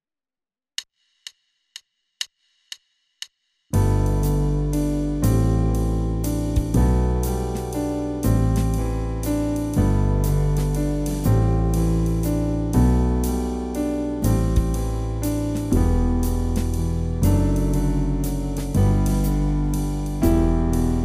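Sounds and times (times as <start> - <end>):
musical accompaniment: 3.8 - 21.0.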